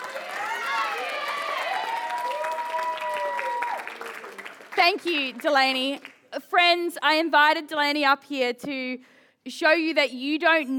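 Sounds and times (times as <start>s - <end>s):
audience applause: 0.0s - 6.1s
speech: 4.8s - 10.7s.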